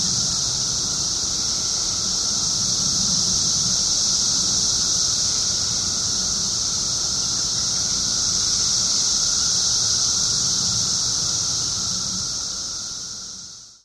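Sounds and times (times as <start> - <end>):
17-year periodical cicada chorus: 0.0 - 13.8.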